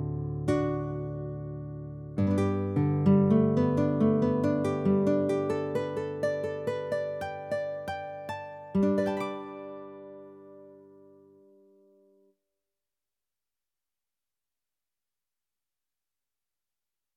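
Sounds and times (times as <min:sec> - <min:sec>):
guitar: 0:00.0 - 0:11.8.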